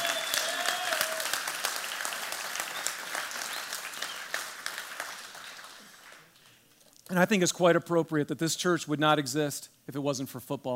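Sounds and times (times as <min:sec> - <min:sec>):
round of applause: 0:00.0 - 0:06.6
speech: 0:07.1 - 0:10.7.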